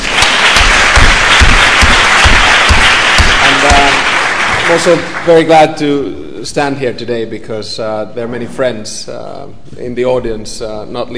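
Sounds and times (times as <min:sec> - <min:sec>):
audience applause for Lithuanian President Adamkus: 0:00.0 - 0:05.5
speech: 0:04.7 - 0:11.1.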